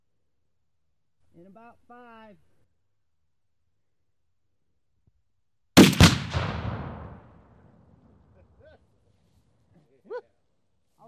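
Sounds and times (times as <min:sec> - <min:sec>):
speech: 0:01.4 - 0:02.5
gunshot: 0:05.8 - 0:07.6.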